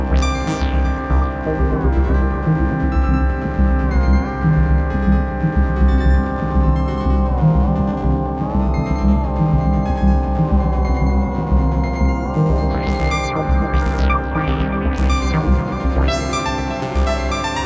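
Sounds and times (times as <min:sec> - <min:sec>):
Hohner KS49 synthesizer with Doepfer DarkTime sequencer: 0:00.0 - 0:17.6.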